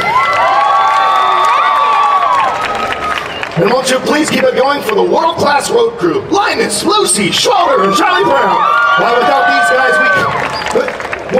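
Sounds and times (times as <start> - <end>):
crowd applause: 0.0 - 5.1, 7.7 - 11.3
crowd cheering: 0.0 - 5.6, 7.2 - 11.3
speech: 3.6 - 10.5.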